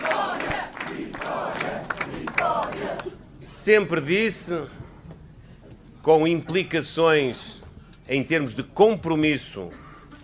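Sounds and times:
crowd chanting vitória at an election rally: 0.0 - 3.2
speech: 3.7 - 4.8, 6.0 - 9.8.

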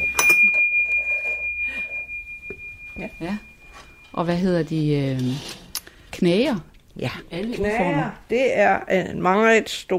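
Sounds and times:
small bell ringing: 0.0 - 5.0
speech: 3.0 - 3.5, 4.2 - 5.6, 6.2 - 9.9.

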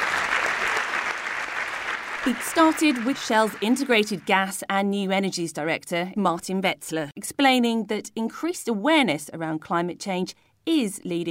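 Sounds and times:
audience applause for panellists: 0.0 - 4.3
speech: 2.2 - 11.2.

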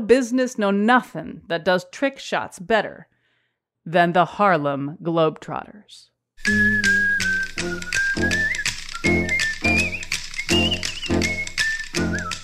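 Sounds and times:
speech: 0.0 - 3.1, 3.8 - 7.7
basketball team's upbeat theme song with whistled melody: 6.4 - 12.4.

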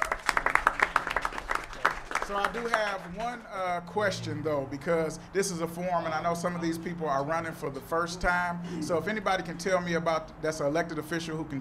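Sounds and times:
audience applause: 0.0 - 3.5
speech: 2.3 - 11.5.

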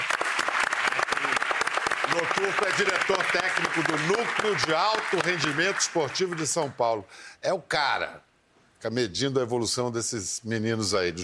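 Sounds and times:
audience applause: 0.0 - 6.8
speech: 2.2 - 11.2.

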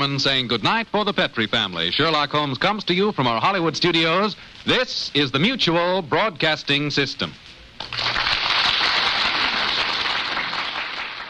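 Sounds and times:
speech: 0.0 - 8.2
studio audience applause: 7.8 - 11.2.

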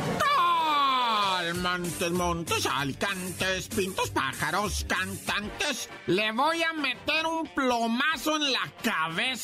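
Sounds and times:
wailing scream of a ghostly woman, la llorona: 0.2 - 1.2
speech: 1.6 - 9.4.

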